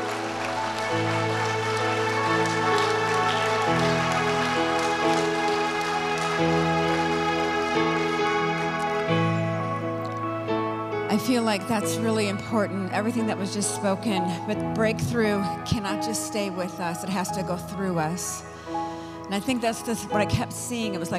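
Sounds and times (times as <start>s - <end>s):
audience hand clapping: 0.0s - 10.3s
sustained keyboard chords: 0.0s - 21.1s
speech: 11.2s - 21.1s.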